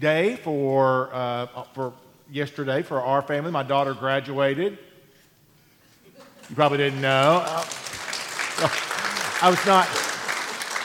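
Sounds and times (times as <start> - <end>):
speech: 0.0 - 4.9, 6.5 - 7.9, 8.6 - 10.1
audience applause: 6.4 - 10.8.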